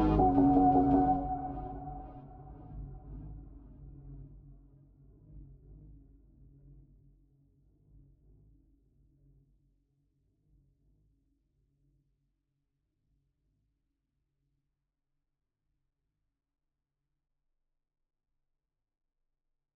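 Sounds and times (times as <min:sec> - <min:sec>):
chill relaxing music: 0:00.0 - 0:02.6.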